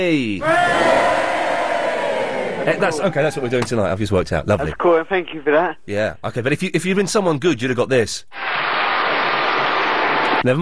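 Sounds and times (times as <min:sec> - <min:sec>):
speech: 0:00.0 - 0:01.0, 0:02.6 - 0:08.6, 0:10.4 - 0:10.6
crowd cheer sound effect: 0:00.4 - 0:03.7, 0:08.4 - 0:10.4.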